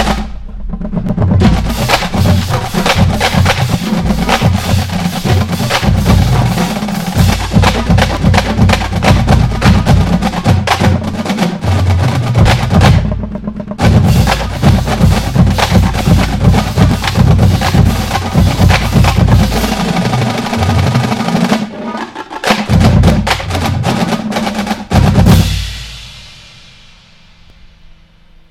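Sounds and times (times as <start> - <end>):
drum corps drum line playing: 0.0 - 27.4.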